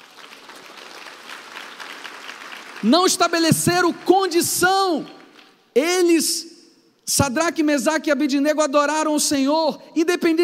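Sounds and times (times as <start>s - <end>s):
audience applause: 0.0s - 2.9s
speech: 2.8s - 5.2s, 5.8s - 6.5s, 7.1s - 10.4s.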